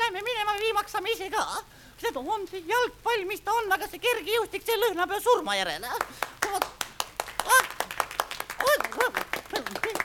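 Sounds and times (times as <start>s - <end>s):
speech: 1.0s - 6.8s
audience clapping: 5.9s - 10.0s.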